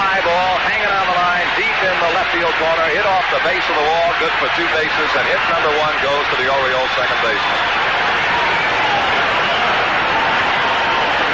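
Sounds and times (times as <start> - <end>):
stadium crowd cheering a base hit: 0.0 - 11.3
speech: 2.6 - 8.2.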